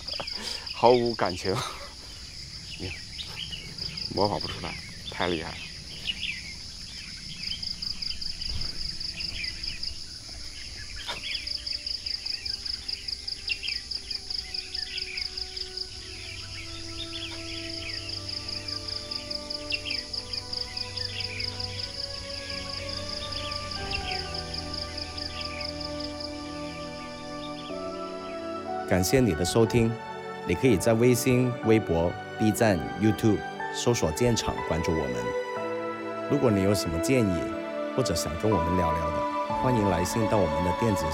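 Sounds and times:
bird song with metallic spring-like calls: 0.0 - 28.5
steady high insect drone: 0.0 - 41.1
speech: 0.3 - 1.8, 2.8 - 3.0, 4.1 - 5.7, 28.9 - 35.4, 36.3 - 41.1.

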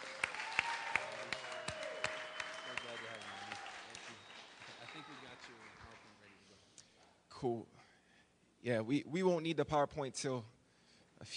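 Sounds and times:
church audience clapping to welcome a speaker: 0.0 - 6.5
speech: 7.4 - 7.7, 8.6 - 10.6, 11.2 - 11.3.

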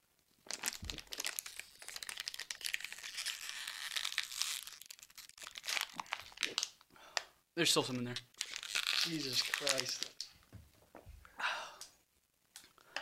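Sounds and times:
plastic water bottle crinkling: 0.4 - 6.8, 8.2 - 10.4
speech: 7.6 - 8.3, 9.0 - 10.2.

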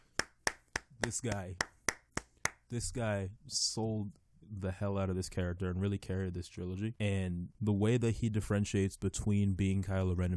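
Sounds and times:
hand claps from a single pair of hands: 0.0 - 2.7
speech: 1.0 - 1.8, 2.7 - 10.3.

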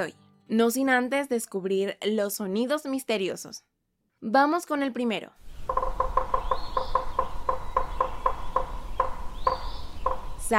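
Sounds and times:
speech: 0.0 - 5.8
woodpecker pecking: 5.4 - 10.5.

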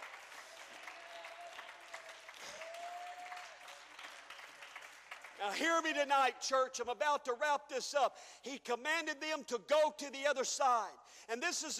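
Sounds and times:
audience clapping: 0.0 - 6.0
speech: 5.4 - 11.7.

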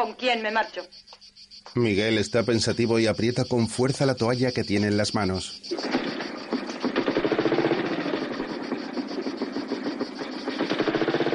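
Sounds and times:
speech: 0.0 - 6.0
motorcycle with sidecar riding along a road: 5.8 - 11.3.

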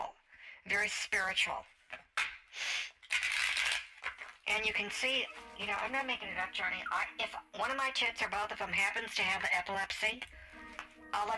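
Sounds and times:
speech: 0.6 - 2.0, 4.5 - 10.4, 11.1 - 11.3
shuffling a deck of cards: 3.0 - 4.6.

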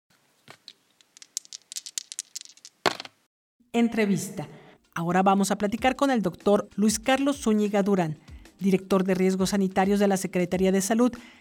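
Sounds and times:
dice rattling and clattering across a surface: 0.5 - 3.2
speech: 3.8 - 11.3.

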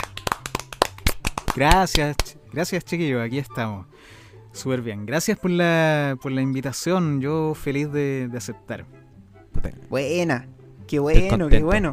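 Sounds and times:
crowd applause: 0.0 - 1.8
speech: 1.6 - 9.0, 9.6 - 11.9.

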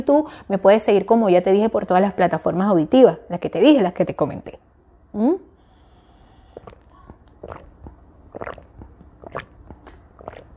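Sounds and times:
speech: 0.0 - 5.4
person drinking water: 6.5 - 10.5.

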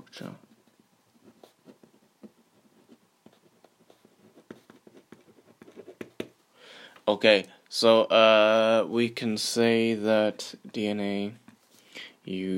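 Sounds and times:
speech: 0.1 - 0.5, 7.1 - 11.4, 12.0 - 12.5
pen scratching on paper while writing a title: 1.2 - 6.3.

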